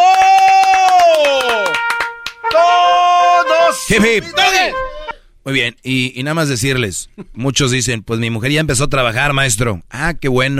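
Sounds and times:
hand clapping: 0.0s - 2.9s
speech: 3.9s - 4.8s, 5.5s - 10.5s.

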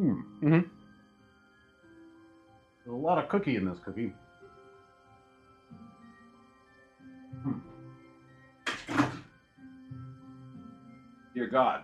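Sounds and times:
speech: 0.2s - 0.8s, 2.9s - 4.2s, 11.4s - 11.8s
object knocked over: 8.7s - 9.3s.

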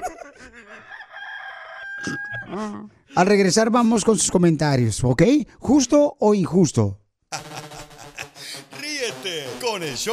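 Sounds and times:
laughter: 0.0s - 1.0s, 7.3s - 9.6s
two roosters crowing: 0.0s - 2.6s
speech: 2.0s - 7.4s, 9.8s - 10.1s.

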